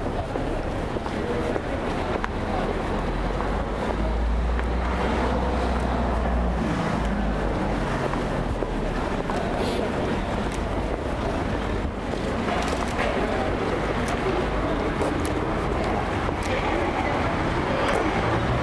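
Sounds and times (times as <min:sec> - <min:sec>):
faint voices: 0:00.0 - 0:18.6
passing vehicles rumbling on a Paris street: 0:00.0 - 0:18.6.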